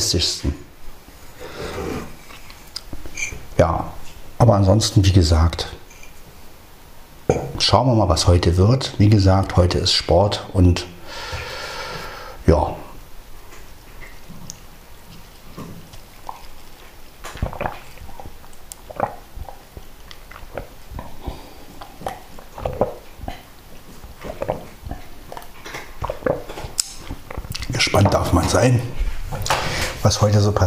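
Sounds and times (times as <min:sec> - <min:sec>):
speech: 0:00.0 - 0:00.7, 0:03.6 - 0:05.8, 0:07.3 - 0:11.4, 0:12.5 - 0:12.8, 0:28.0 - 0:29.0, 0:30.0 - 0:30.6
cookie being bitten and chewed: 0:13.5 - 0:27.8.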